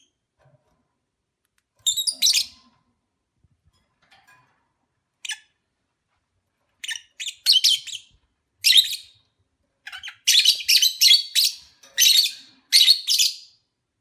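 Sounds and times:
lovebird chirps during courtship: 0:01.9 - 0:02.6, 0:06.8 - 0:09.2, 0:09.9 - 0:13.6.

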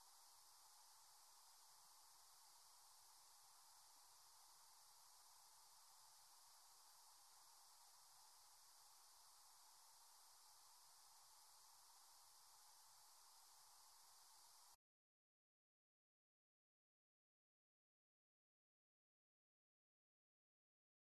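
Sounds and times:
cricket chirping: 0:00.0 - 0:14.7.

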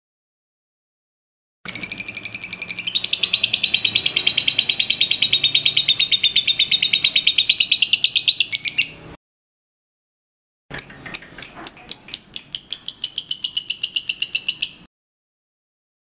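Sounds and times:
liontin lovebird pouring out shrill buzzy pulses: 0:01.7 - 0:09.1, 0:11.1 - 0:14.9.

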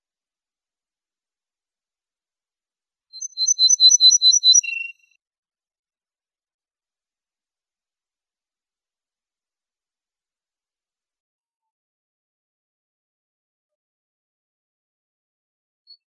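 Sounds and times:
Ortolan bunting singing: 0:03.2 - 0:05.0.

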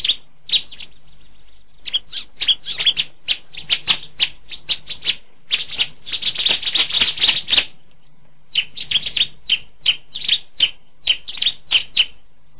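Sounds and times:
Bar-winged Prinia giving sharp ticking notes: 0:00.0 - 0:07.8, 0:08.5 - 0:12.5.

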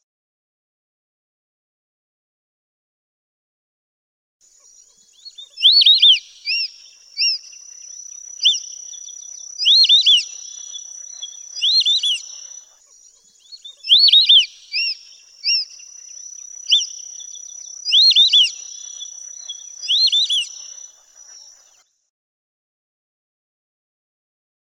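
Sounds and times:
white-faced whistling duck three-note whistled calls: 0:05.6 - 0:07.5, 0:08.4 - 0:12.6, 0:13.7 - 0:16.0, 0:16.6 - 0:20.9.

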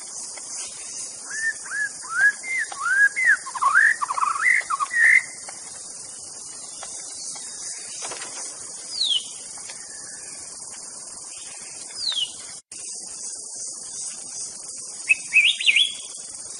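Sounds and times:
White-rumped Shama song in forest: 0:00.8 - 0:05.4, 0:08.9 - 0:10.4, 0:11.4 - 0:12.5, 0:15.0 - 0:16.2.

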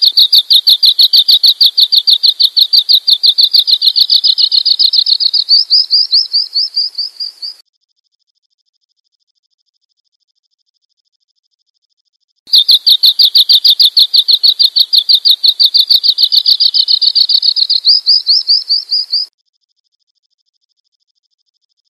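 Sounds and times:
bird chirping: 0:00.0 - 0:07.6, 0:12.5 - 0:19.3.

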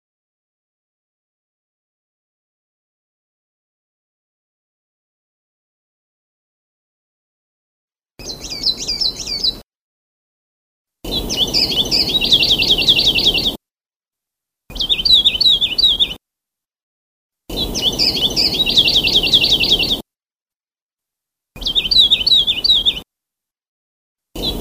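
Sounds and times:
Sulawesi leaf warbler singing: 0:08.2 - 0:09.6, 0:11.1 - 0:13.6, 0:14.7 - 0:16.2, 0:17.5 - 0:20.0, 0:21.6 - 0:23.0, 0:24.4 - 0:24.5.

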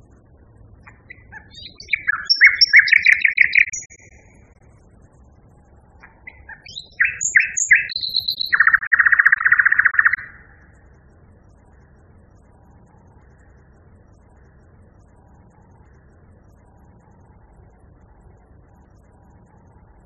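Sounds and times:
common nightingale singing: 0:00.8 - 0:04.6, 0:06.0 - 0:10.8.

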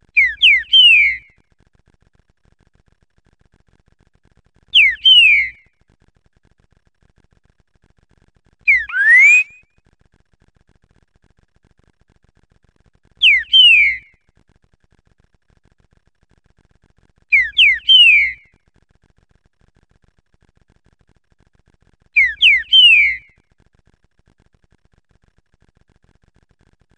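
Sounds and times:
green-winged saltator song of rich slurred rising and falling whistles: 0:00.2 - 0:01.2, 0:04.8 - 0:05.6, 0:08.7 - 0:09.6, 0:13.2 - 0:14.0, 0:17.3 - 0:18.4, 0:22.2 - 0:23.3.

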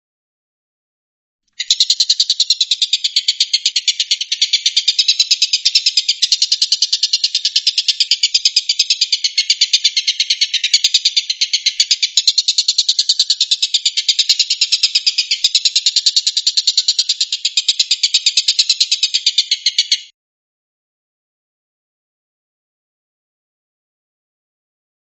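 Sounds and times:
Stork-billed kingfisher rattling call: 0:01.6 - 0:20.1.

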